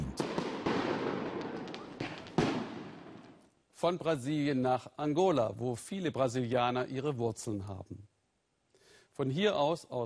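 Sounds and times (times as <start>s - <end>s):
fireworks at a church festival: 0.0s - 3.4s
speech: 3.8s - 8.1s, 9.2s - 10.0s.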